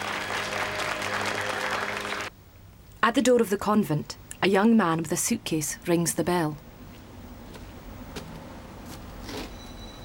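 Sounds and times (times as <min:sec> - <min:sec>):
applause at a film screening: 0:00.0 - 0:02.3
speech: 0:03.1 - 0:06.7.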